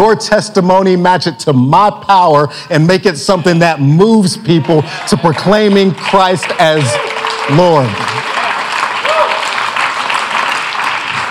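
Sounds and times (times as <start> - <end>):
speech: 0.0 - 8.2
audience clapping: 4.2 - 11.2.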